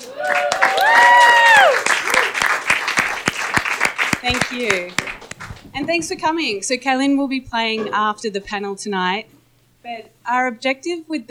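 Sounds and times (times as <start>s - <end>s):
audience applause: 0.0s - 6.1s
speech: 4.5s - 5.0s, 5.8s - 11.2s.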